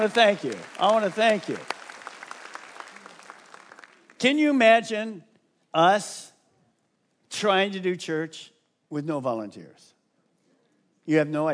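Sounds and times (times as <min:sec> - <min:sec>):
speech: 0:00.0 - 0:01.8, 0:04.2 - 0:06.3, 0:07.3 - 0:09.9, 0:11.1 - 0:11.5
audience applause: 0:00.0 - 0:04.2.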